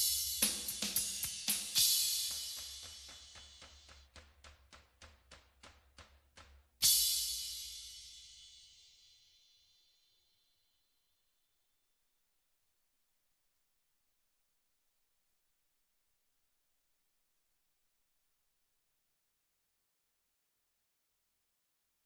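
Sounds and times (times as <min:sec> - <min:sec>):
cymbals: 0:00.0 - 0:05.1, 0:06.8 - 0:09.3.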